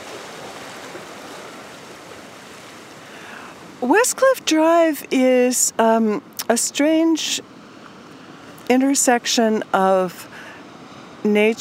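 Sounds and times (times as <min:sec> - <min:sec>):
ocean surf washing along the shore: 0:00.0 - 0:11.5
speech: 0:03.8 - 0:07.5, 0:08.7 - 0:10.3, 0:11.2 - 0:11.5.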